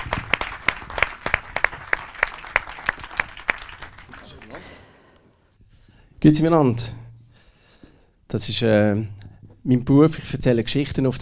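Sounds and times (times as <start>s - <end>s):
audience applause: 0.0s - 5.0s
speech: 6.2s - 7.0s, 8.3s - 11.2s.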